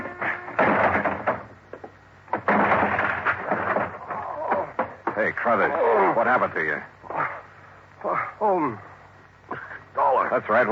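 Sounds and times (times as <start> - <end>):
locked office door being forced open with crashing thuds: 0.0 - 1.6, 2.3 - 5.3
splintering impact: 0.1 - 1.6, 2.3 - 5.3
speech: 5.3 - 7.0, 8.0 - 8.9, 10.2 - 10.7.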